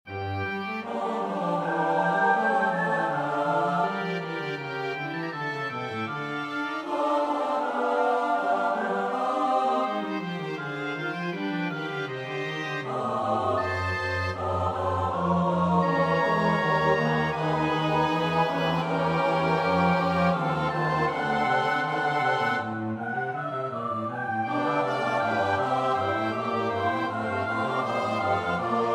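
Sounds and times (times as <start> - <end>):
soprano alto tenor bass voices: 0.1 - 28.9.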